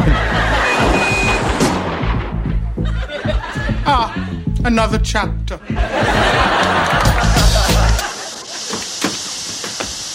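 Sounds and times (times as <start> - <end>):
laughter: 0.0 - 4.4, 5.6 - 9.0
car crash in parking lot: 0.7 - 2.6
speech: 4.7 - 6.4.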